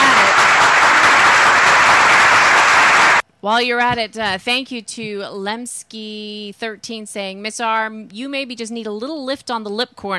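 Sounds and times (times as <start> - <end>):
roaring round of applause: 0.0 - 3.2
speech: 3.4 - 10.1.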